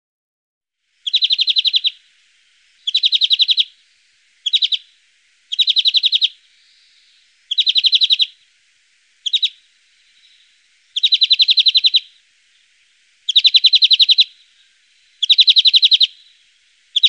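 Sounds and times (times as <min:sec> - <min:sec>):
European greenfinch song with fast ringing trills: 0:01.0 - 0:02.0, 0:02.8 - 0:03.7, 0:04.4 - 0:04.8, 0:05.5 - 0:08.4, 0:09.2 - 0:12.2, 0:13.2 - 0:17.0.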